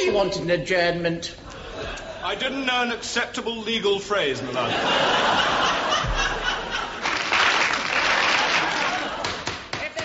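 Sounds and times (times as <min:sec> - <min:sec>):
speech: 0:00.2 - 0:06.1
laughter: 0:01.4 - 0:03.0, 0:04.2 - 0:10.0
women applauding in a courtroom: 0:07.0 - 0:09.6.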